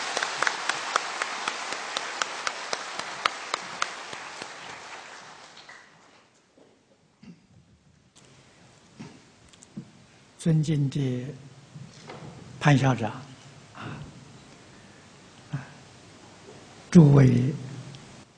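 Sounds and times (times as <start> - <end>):
warm applause from audience: 0.0 - 6.3
speech: 10.4 - 11.5, 12.6 - 13.3, 17.0 - 17.6.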